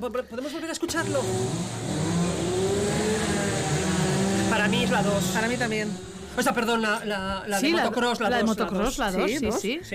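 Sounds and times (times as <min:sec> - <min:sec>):
speech: 0:00.0 - 0:02.4, 0:04.5 - 0:09.9
chainsaw running: 0:00.9 - 0:07.0.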